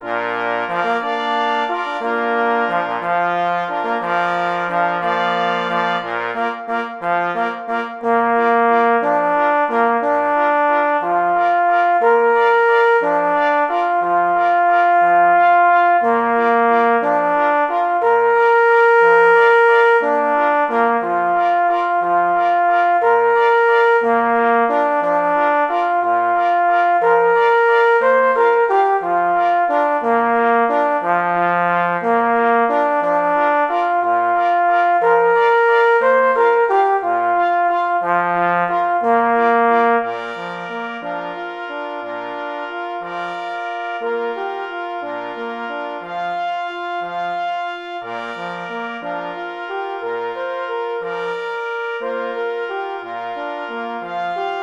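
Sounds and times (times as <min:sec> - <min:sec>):
waltz music: 0:00.0 - 0:54.6.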